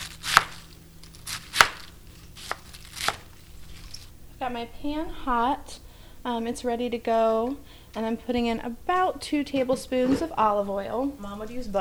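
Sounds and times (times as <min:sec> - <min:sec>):
knife chopping quartered and halved cabbage into chunks: 0:00.0 - 0:04.1
speech: 0:04.4 - 0:11.7.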